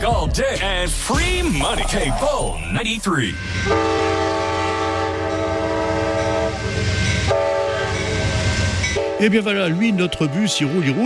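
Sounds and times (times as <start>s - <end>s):
speech: 0.0s - 4.2s, 9.2s - 11.0s
passing Amtrak rail cars rumbling: 0.7s - 11.0s
Amtrak train multi-tone horn: 3.5s - 11.0s.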